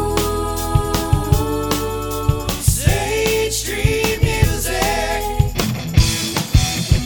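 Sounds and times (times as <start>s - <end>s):
jingle: 0.1s - 6.9s.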